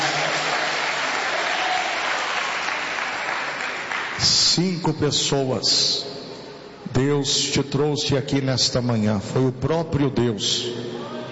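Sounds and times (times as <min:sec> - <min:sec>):
audience clapping: 0:00.0 - 0:04.3
speech: 0:04.2 - 0:06.1, 0:07.0 - 0:10.9.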